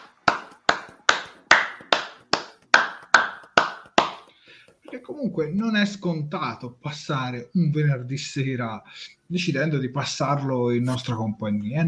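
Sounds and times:
crisp hand claps: 0.0 - 5.0
speech: 4.9 - 11.8.

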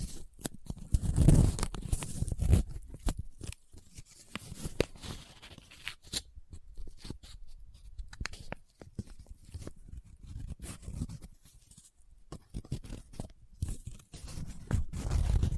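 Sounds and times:
paper handled and crinkling: 0.0 - 15.5.

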